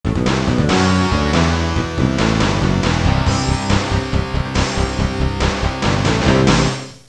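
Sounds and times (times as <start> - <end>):
rock music ringtone: 0.1 - 7.0.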